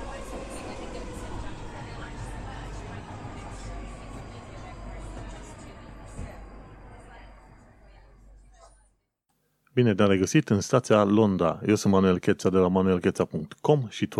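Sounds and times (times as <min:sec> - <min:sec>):
London Underground train rumbling in a station: 0:00.0 - 0:08.6
voices: 0:00.0 - 0:09.0
speech: 0:09.8 - 0:14.1.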